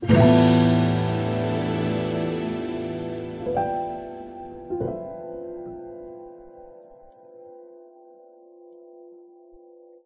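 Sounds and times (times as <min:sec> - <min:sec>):
chord: 0:00.0 - 0:05.0.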